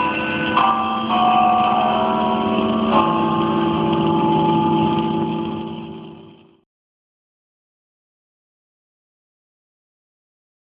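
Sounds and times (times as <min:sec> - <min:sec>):
church chimes ringing in 1945: 0:00.0 - 0:06.6.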